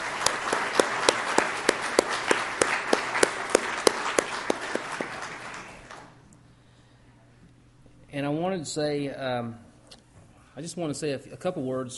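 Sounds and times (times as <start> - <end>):
crowd applause: 0.0 - 6.2
speech: 8.2 - 9.7, 10.6 - 11.9.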